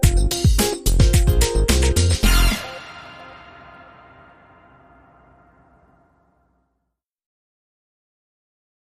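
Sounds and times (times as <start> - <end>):
breakbeat music bed: 0.0 - 5.9.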